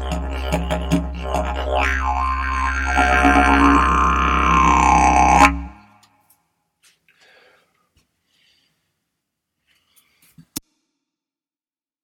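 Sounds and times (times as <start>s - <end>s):
didgeridoo: 0.0s - 5.9s.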